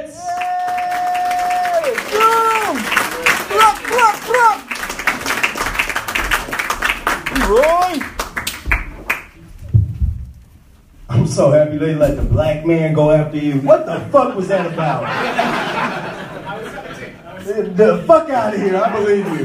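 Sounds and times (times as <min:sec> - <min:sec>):
whoops and cheers: 0:00.3 - 0:02.9
audience applause: 0:00.3 - 0:09.3
speech: 0:11.4 - 0:15.7, 0:17.5 - 0:19.4
laughter: 0:14.3 - 0:19.4.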